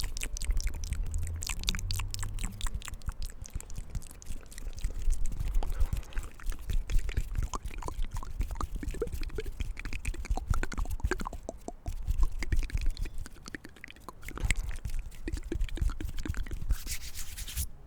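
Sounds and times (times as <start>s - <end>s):
soft mouth sounds: 0.0s - 17.0s
hand sounds: 5.2s - 17.7s.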